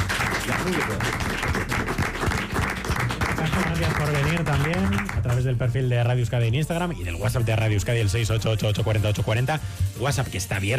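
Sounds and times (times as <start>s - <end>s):
small studio audience clapping: 0.0s - 5.8s
speech: 0.5s - 1.3s, 3.5s - 10.7s.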